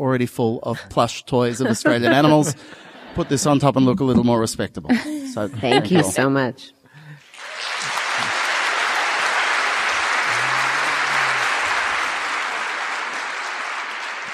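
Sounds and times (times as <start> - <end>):
speech: 0.0 - 6.8
laughter: 0.7 - 6.3, 10.0 - 12.2
audience applause: 7.2 - 14.3.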